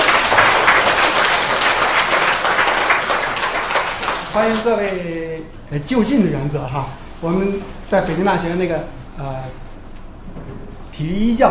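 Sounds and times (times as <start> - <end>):
warm audience applause: 0.0 - 4.6
speech: 4.4 - 9.7, 10.4 - 11.4.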